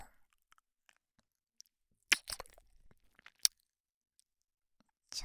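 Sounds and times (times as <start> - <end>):
right ear licking sounds: 2.1 - 3.5.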